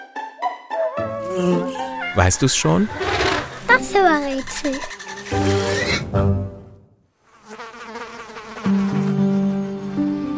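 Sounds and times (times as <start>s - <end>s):
fly buzzing: 1.2s - 6.0s, 7.2s - 10.3s
speech: 1.4s - 6.4s.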